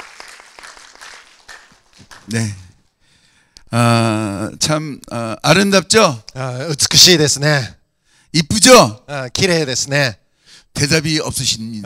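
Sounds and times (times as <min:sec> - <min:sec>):
audience applause at a Korean-language event: 0:00.0 - 0:02.6
speech: 0:02.3 - 0:02.6, 0:03.7 - 0:11.8.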